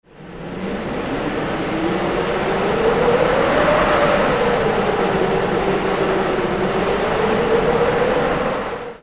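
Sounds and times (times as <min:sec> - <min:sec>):
wind: 0:00.0 - 0:09.0.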